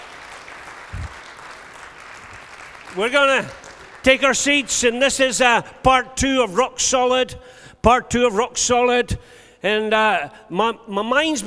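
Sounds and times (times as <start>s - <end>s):
congregation clapping at a church service: 0.0s - 6.3s
speech: 2.9s - 11.4s.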